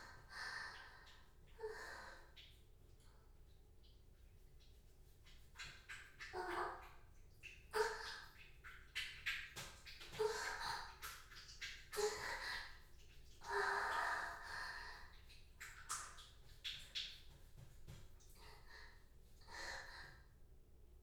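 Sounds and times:
person urinating in a bath: 0.1 - 19.7
wet squelching from masturbation in a bath: 3.8 - 18.6.

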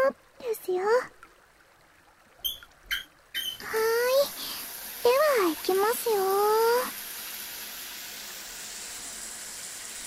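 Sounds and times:
shower water rinsing shampoo from hair: 2.4 - 10.0
speech: 5.9 - 6.6.

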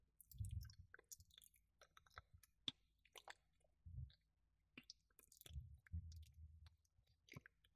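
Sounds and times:
slow melting ear licking sounds: 0.2 - 3.5, 4.8 - 7.7.

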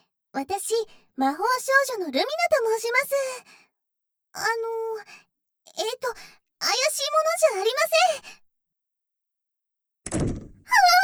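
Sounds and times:
speech: 0.4 - 3.7, 4.4 - 8.4
door shutting: 10.1 - 10.7.

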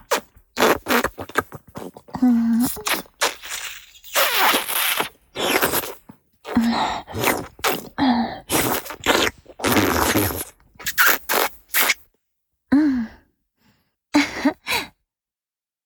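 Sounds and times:
sucking and slurping sounds: 0.1 - 12.0.

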